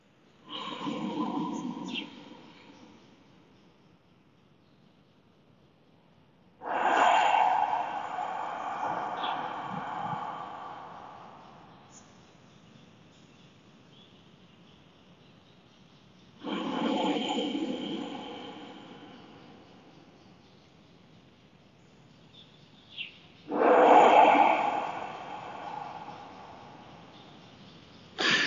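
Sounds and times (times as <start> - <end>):
slow deep breathing: 0.4 - 3.2, 6.6 - 12.3, 16.4 - 20.2, 23.5 - 27.5.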